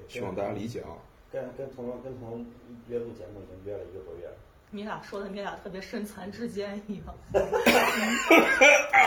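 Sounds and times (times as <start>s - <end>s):
speech: 0.1s - 9.0s
person coughing: 7.6s - 8.9s.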